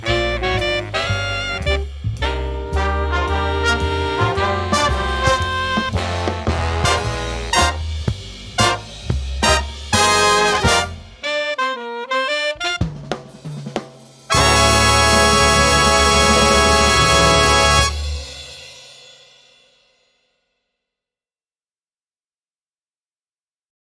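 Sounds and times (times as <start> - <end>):
jazz fight song: 0.0 - 18.7.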